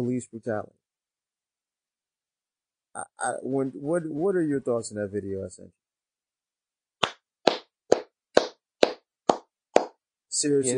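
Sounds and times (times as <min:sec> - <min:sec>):
speech: 0:00.0 - 0:00.8, 0:03.0 - 0:05.8, 0:10.4 - 0:10.7
hand clapping: 0:07.0 - 0:10.0.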